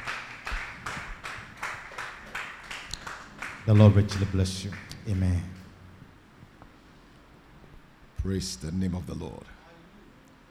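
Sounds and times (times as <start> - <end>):
audience hand clapping: 0.0 - 5.7
speech: 3.7 - 5.6, 8.2 - 9.6.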